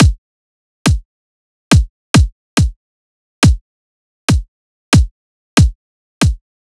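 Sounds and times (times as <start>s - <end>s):
140 bpm kick drum loop: 0.0s - 0.2s, 1.7s - 2.8s, 3.4s - 3.6s, 4.3s - 6.4s.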